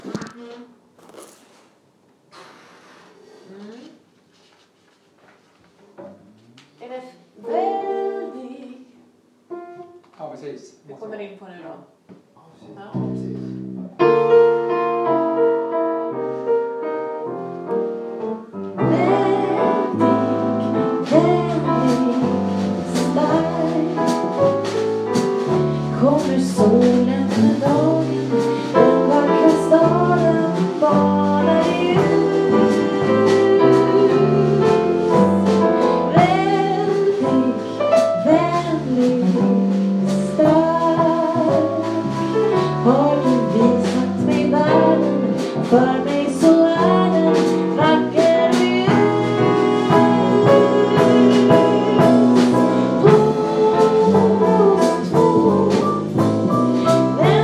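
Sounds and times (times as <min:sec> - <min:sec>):
waltz music: 0:13.5 - 0:57.4.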